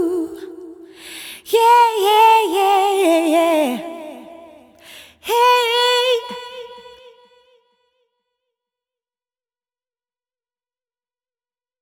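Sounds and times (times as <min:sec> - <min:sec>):
vocal ad-lib effects: 0:00.0 - 0:07.2.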